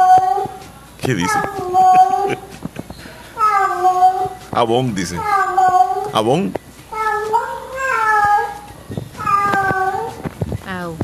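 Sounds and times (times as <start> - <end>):
speech: 1.0 - 2.5, 4.6 - 5.4, 6.1 - 6.6
laughter: 1.1 - 3.3
cat meowing: 1.2 - 2.4, 3.4 - 4.4, 5.0 - 6.1, 6.9 - 10.3.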